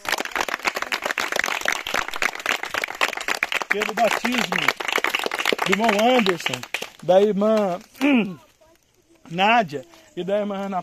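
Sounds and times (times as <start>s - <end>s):
audience applause: 0.0s - 7.2s
speech: 3.7s - 4.9s, 5.6s - 8.4s, 9.3s - 10.8s.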